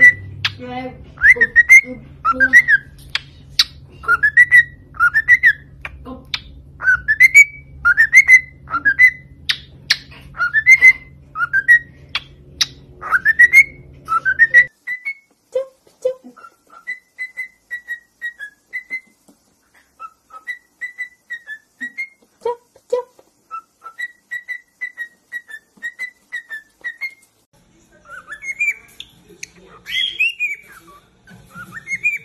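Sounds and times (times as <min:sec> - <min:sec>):
cockatiel whistling: 0:00.0 - 0:00.3, 0:01.2 - 0:05.8, 0:06.8 - 0:15.3, 0:16.4 - 0:19.2, 0:20.0 - 0:22.2, 0:23.5 - 0:27.2, 0:28.1 - 0:29.1, 0:29.8 - 0:32.2
speech: 0:00.6 - 0:03.1, 0:04.0 - 0:04.4.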